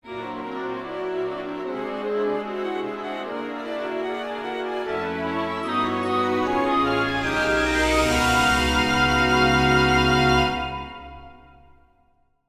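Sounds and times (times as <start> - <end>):
background music for exiting a cave: 0.0 - 12.2.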